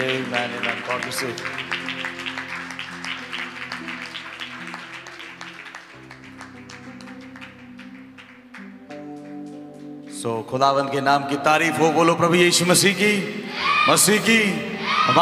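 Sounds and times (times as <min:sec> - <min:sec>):
speech: 0:00.0 - 0:01.8, 0:10.2 - 0:15.2
congregation clapping to welcome a church brother at a worship service in Etah: 0:00.0 - 0:10.9
sustained keyboard chords: 0:00.0 - 0:15.2.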